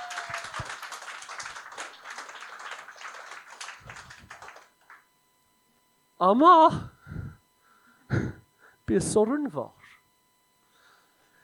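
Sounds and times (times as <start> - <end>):
crowd audience applause: 0.0 - 5.0
speech: 6.2 - 6.9, 8.9 - 9.8.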